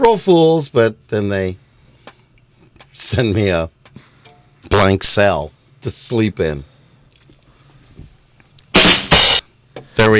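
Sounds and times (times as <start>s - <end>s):
speech: 0.0s - 1.6s, 3.0s - 6.7s, 10.0s - 10.1s
rim shot drum sound effect: 8.8s - 9.4s.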